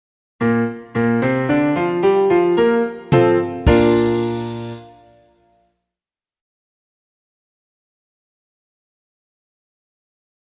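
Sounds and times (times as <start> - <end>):
music in B-flat major: 0.4 - 5.6.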